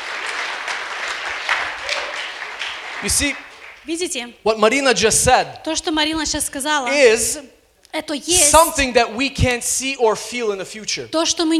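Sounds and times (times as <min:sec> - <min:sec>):
crowd clapping: 0:00.0 - 0:04.4
speech: 0:03.0 - 0:11.5.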